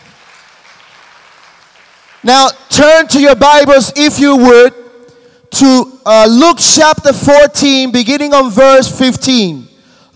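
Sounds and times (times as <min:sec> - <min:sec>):
crowd clapping: 0:00.0 - 0:02.3
speech: 0:02.2 - 0:04.8, 0:05.5 - 0:10.1.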